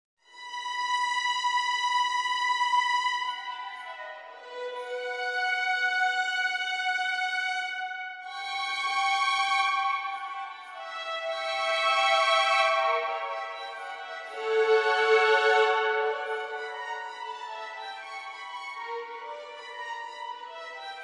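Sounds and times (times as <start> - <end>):
background music: 0.3 - 21.0.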